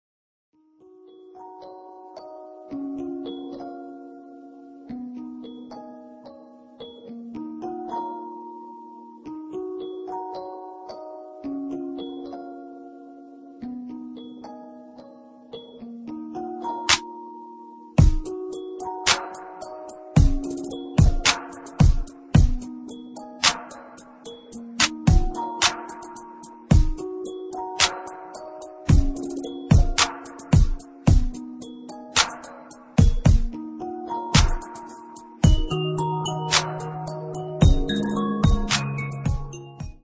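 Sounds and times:
R&B hip hop beat: 16.4s - 17.3s, 18.0s - 40.0s.

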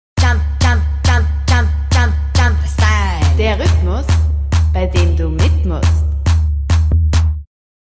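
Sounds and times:
jumpstyle music: 0.2s - 7.5s.

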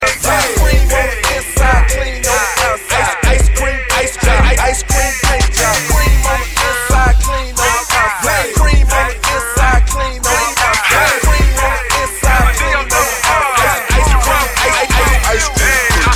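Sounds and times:
hip hop music: 0.0s - 16.1s.

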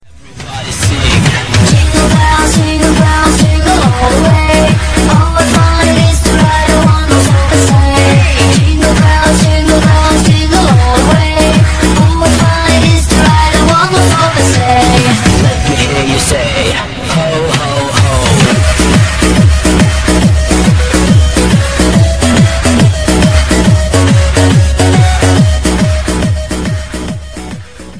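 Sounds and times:
festive dance music: 0.1s - 27.9s.

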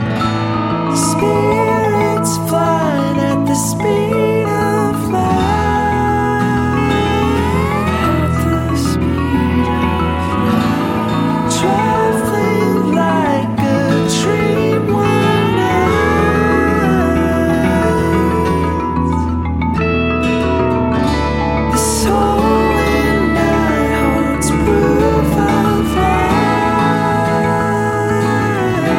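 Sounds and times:
pop music: 0.0s - 28.9s.

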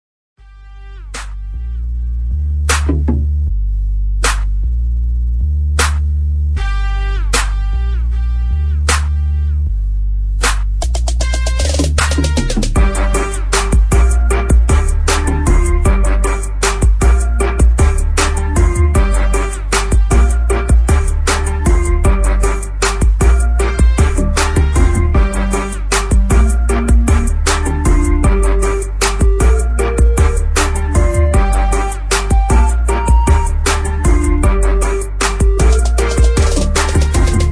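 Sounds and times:
instrumental music: 0.4s - 37.5s.

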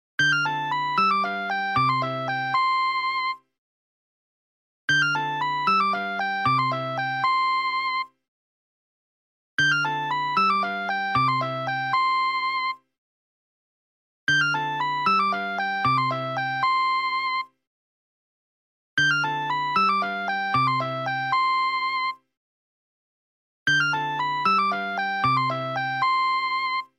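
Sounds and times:
phone ringtone melody: 0.2s - 3.4s, 4.9s - 8.0s, 9.6s - 12.7s, 14.3s - 17.4s, 19.0s - 22.1s, 23.7s - 26.8s.

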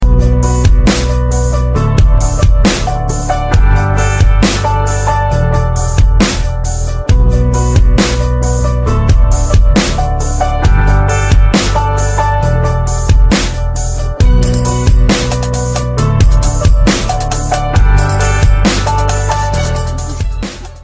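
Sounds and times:
beats: 0.0s - 20.8s.

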